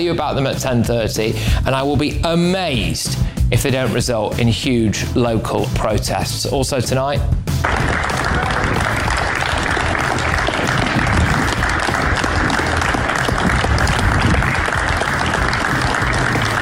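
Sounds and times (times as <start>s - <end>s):
speech: 0.0s - 8.4s
people clapping outdoors for the NHS: 7.5s - 16.6s.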